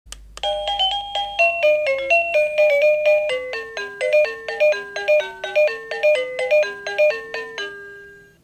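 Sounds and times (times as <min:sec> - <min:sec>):
wireless doorbell melody: 0:00.4 - 0:08.4.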